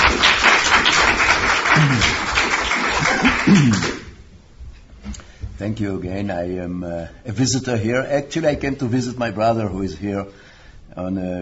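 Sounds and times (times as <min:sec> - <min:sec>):
audience applause welcoming a guest speaker at a talk: 0:00.0 - 0:04.1
speech: 0:01.8 - 0:02.2, 0:05.6 - 0:11.3.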